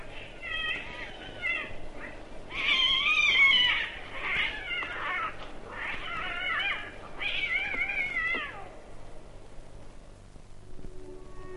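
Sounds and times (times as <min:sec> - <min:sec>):
cats caterwauling in a fight: 0:00.0 - 0:08.8.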